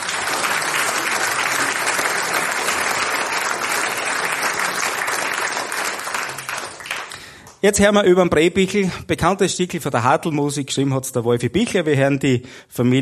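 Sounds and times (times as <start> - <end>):
audience applause: 0.0 - 7.5
speech: 7.6 - 13.0.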